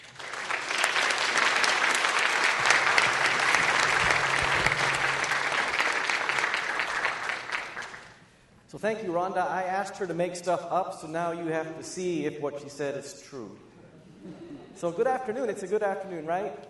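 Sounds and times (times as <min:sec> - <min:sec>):
audience applause welcoming theologian Norman Wirzba to the lectern: 0:00.0 - 0:08.2
speech: 0:08.8 - 0:16.6.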